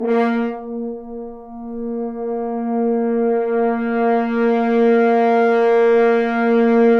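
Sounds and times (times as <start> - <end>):
French horns sforzando: 0.0 - 6.9.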